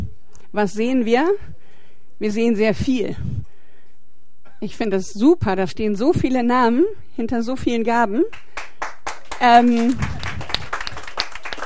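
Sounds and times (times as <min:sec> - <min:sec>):
speech: 0:00.5 - 0:01.6, 0:02.2 - 0:03.5, 0:04.6 - 0:08.5, 0:09.4 - 0:10.2
audience applause: 0:08.6 - 0:11.6.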